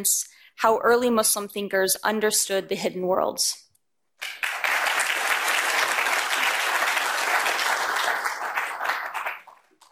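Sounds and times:
speech: 0:00.0 - 0:03.6
audience applause welcoming a professor at NYU Abu Dhabi: 0:04.2 - 0:09.9.

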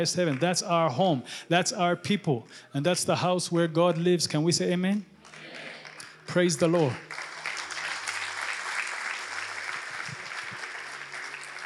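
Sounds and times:
speech: 0:00.0 - 0:05.4, 0:06.3 - 0:07.2
audience hand clapping: 0:05.2 - 0:11.6.

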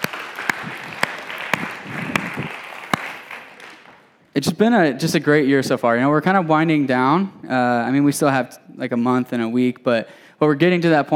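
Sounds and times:
audience clapping: 0:00.0 - 0:04.2
speech: 0:04.4 - 0:11.1.

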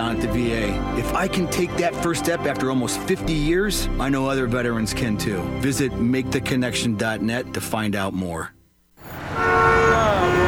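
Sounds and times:
speech: 0:00.0 - 0:08.6
horn blares on a Nashville city street: 0:09.0 - 0:10.4.

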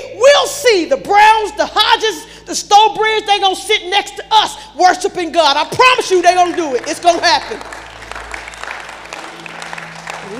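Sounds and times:
speech: 0:00.7 - 0:07.8
audience clapping: 0:06.0 - 0:10.3.

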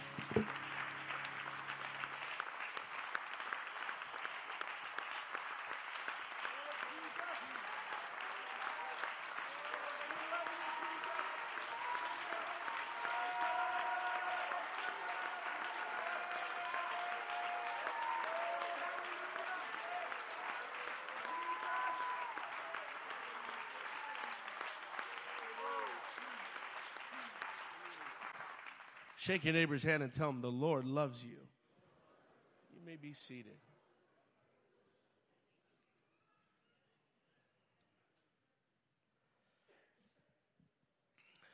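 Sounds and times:
audience hand clapping in praise: 0:00.0 - 0:30.1
speech: 0:29.2 - 0:31.4, 0:33.1 - 0:33.7.

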